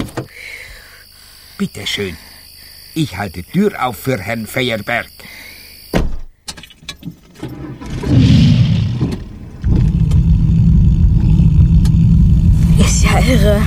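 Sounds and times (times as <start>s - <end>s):
speech: 1.6s - 2.3s, 3.0s - 5.4s
fast car engine in Israel starting and revving: 7.4s - 13.6s.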